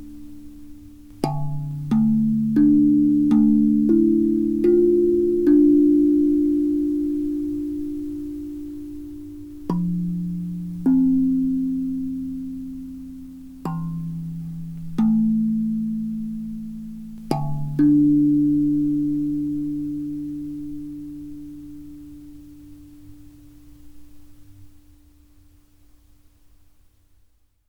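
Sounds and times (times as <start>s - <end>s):
hapi drum in D pygmy scale: 0.0s - 21.8s.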